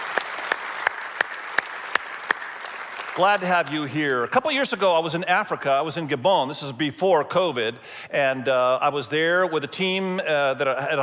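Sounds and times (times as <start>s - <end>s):
audience applause: 0.0s - 4.3s
speech: 3.2s - 11.0s.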